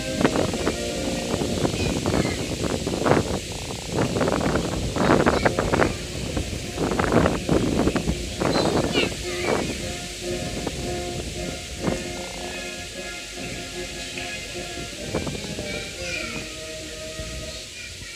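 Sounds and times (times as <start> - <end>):
brass band playing: 0.0 - 2.1, 5.1 - 17.4
voices: 0.0 - 18.1
wind rumble: 0.0 - 18.1.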